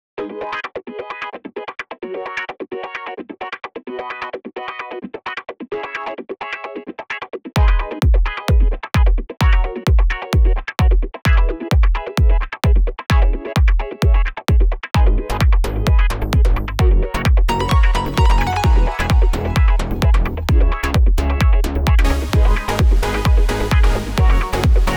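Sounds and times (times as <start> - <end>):
rhythm guitars: 0.2 - 24.9.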